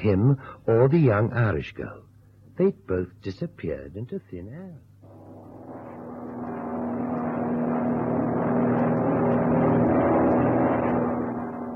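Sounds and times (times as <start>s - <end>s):
speech: 0.0s - 4.9s
airplane engine droning in flight: 5.0s - 11.7s.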